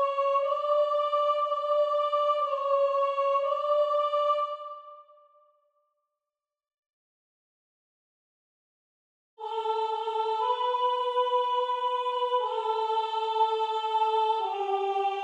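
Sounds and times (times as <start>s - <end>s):
soprano singing: 0.0s - 4.9s, 9.4s - 15.2s.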